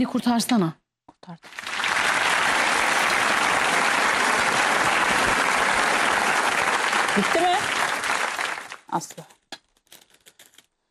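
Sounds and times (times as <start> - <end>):
speech: 0.0 - 1.7, 7.2 - 7.8, 8.9 - 9.4
audience applause: 1.4 - 8.9.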